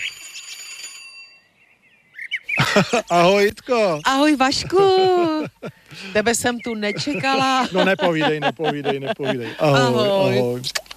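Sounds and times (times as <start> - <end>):
small gate bell ringing: 0.0 - 1.6
laughter: 2.6 - 3.4, 4.5 - 10.5
speech: 2.8 - 10.8.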